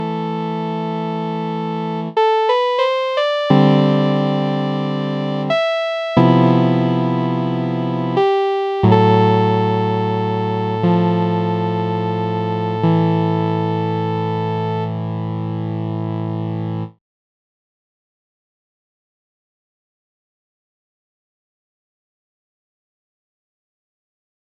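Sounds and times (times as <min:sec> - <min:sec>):
chords and melody: 0:00.0 - 0:17.0.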